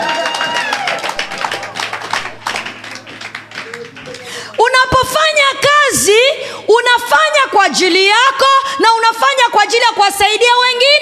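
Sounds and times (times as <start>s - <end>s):
church congregation clapping during a sermon: 0.0s - 5.3s
speech: 6.7s - 10.9s.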